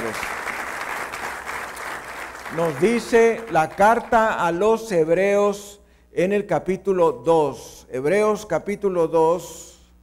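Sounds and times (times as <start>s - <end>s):
crowd applauding: 0.0s - 4.2s
speech: 2.5s - 9.6s.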